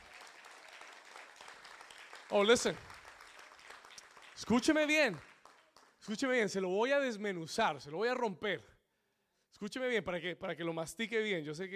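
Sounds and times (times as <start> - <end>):
audience applause: 0.0 - 6.0
speech: 2.3 - 2.9, 4.4 - 5.3, 6.0 - 8.7, 9.6 - 11.7.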